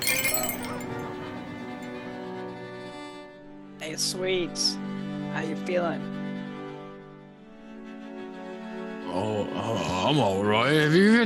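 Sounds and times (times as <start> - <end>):
shop door chime ringing: 0.0 - 1.1
speech: 3.9 - 6.2, 9.2 - 11.2.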